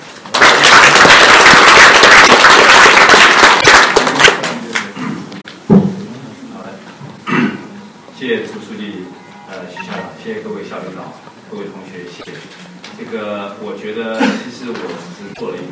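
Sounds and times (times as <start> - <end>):
crowd applauding: 0.3 - 5.0
speech: 8.3 - 15.7.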